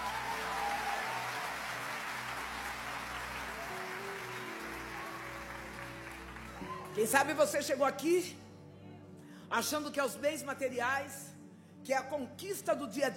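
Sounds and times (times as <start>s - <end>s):
audience applauding: 0.0s - 7.5s
speech: 7.0s - 8.4s, 9.5s - 13.1s.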